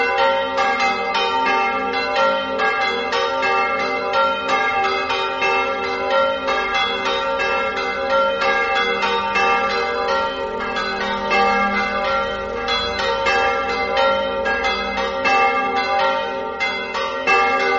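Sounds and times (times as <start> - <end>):
church bells in Chiasiellis: 0.0 - 17.7.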